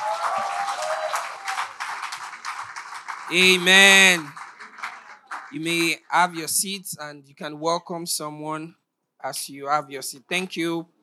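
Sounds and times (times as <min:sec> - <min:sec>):
audience clapping: 0:00.0 - 0:06.5
speech: 0:03.3 - 0:04.4, 0:05.5 - 0:11.0.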